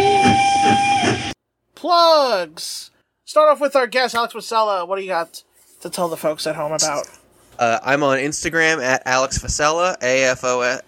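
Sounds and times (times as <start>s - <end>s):
steam train whistle: 0.0s - 1.3s
speech: 1.9s - 10.8s.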